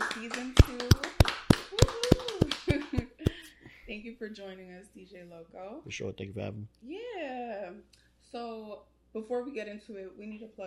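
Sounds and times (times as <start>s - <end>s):
hands clapping: 0.0s - 3.5s
speech: 0.2s - 0.9s, 4.0s - 10.6s
laughter: 1.8s - 3.5s.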